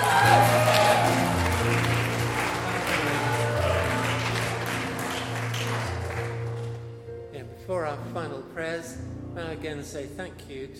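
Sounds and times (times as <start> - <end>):
crowd applause: 0.0 - 6.8
speech: 9.6 - 10.7.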